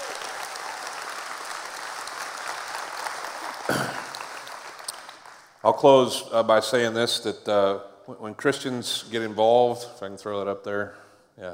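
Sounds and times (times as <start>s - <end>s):
church audience applauding: 0.0s - 5.6s
speech: 5.6s - 11.5s.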